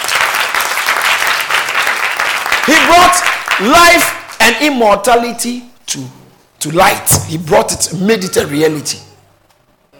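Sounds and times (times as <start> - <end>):
audience clapping: 0.0 - 4.6
speech: 3.6 - 9.1.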